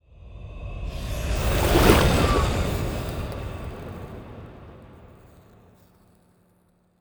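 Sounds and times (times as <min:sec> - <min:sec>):
titan ship moving: 0:01.0 - 0:05.6.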